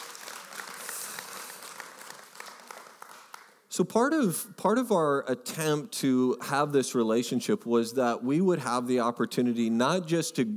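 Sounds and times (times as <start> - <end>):
audience clapping: 0.0 - 3.7
speech: 3.8 - 10.5.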